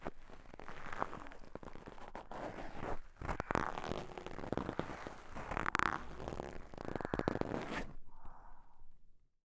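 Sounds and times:
cotton swab ear cleaning: 1.5s - 7.8s.

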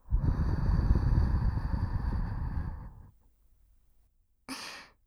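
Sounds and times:
ASMR blowing into ear: 0.1s - 3.1s.

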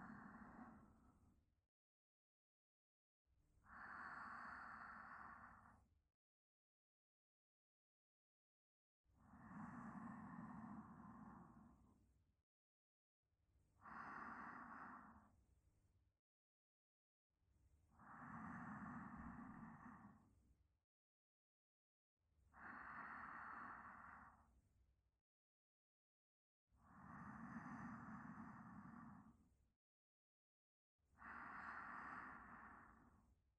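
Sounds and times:
sleep breathing: 0.1s - 1.0s, 3.7s - 5.8s, 9.3s - 11.8s, 13.8s - 15.3s, 18.0s - 20.3s, 22.6s - 24.4s, 26.8s - 29.4s, 31.2s - 33.2s.

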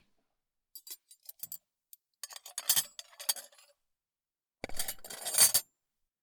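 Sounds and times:
dishes clinking as they are cleared: 2.3s - 3.6s, 4.7s - 5.7s.

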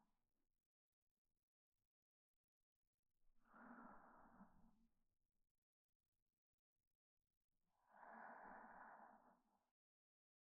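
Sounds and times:
reversed breathing of a sleeping person: 3.5s - 4.5s, 7.9s - 9.5s.

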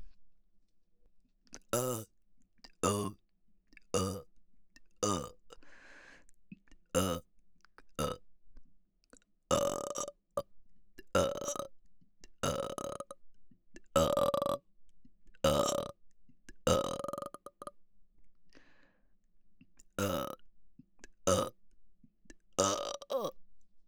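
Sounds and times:
person burping: 1.7s - 2.1s, 2.9s - 3.2s, 4.0s - 4.3s, 5.1s - 5.4s, 7.0s - 7.2s, 8.0s - 8.2s, 9.5s - 10.1s, 11.1s - 11.7s, 12.4s - 13.1s, 13.9s - 14.6s, 15.5s - 15.9s, 16.7s - 17.7s, 20.0s - 20.4s, 21.3s - 21.5s, 22.6s - 23.4s.

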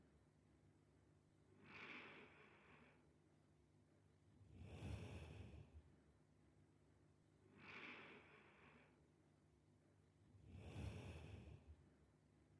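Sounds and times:
person breathing in sleep: 1.6s - 3.0s, 4.6s - 5.7s, 7.5s - 9.0s, 10.5s - 11.7s.

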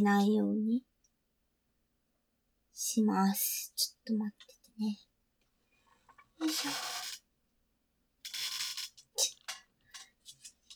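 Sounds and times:
speech: 0.0s - 0.9s, 2.8s - 5.1s, 6.4s - 6.9s
chair creaking: 6.1s - 7.2s, 8.2s - 10.7s.

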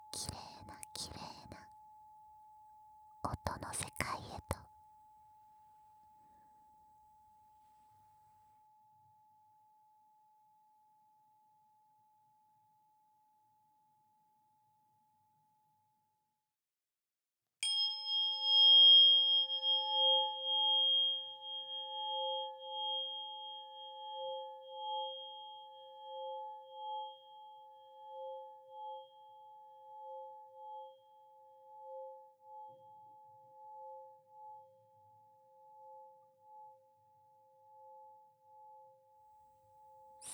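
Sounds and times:
healing tuning fork tones: 17.6s - 32.8s.

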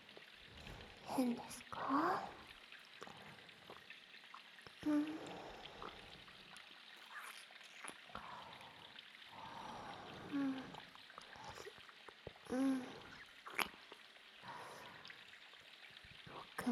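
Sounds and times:
water dripping: 0.0s - 16.6s
ear licking: 2.9s - 8.3s, 13.1s - 14.2s.

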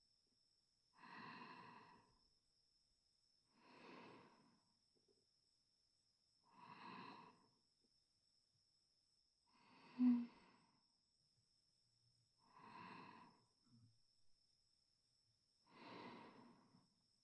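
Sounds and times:
sleeping breath: 1.0s - 2.1s, 3.6s - 4.6s, 6.5s - 7.4s, 9.5s - 10.8s, 12.5s - 13.5s, 15.7s - 16.8s.

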